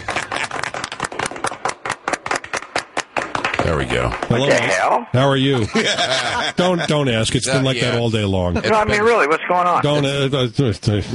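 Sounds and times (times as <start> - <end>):
laughter: 0.0 - 1.4, 5.3 - 10.4
small audience clapping: 0.0 - 4.7
speech: 3.6 - 11.1.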